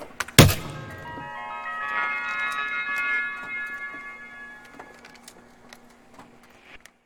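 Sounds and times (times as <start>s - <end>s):
computer jingle: 0.4s - 5.4s.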